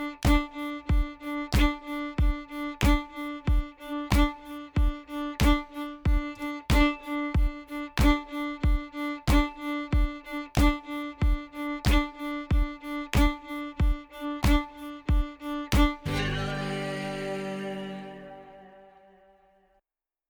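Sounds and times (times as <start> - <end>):
violin in open D with offbeat accents: 0.0 - 19.1.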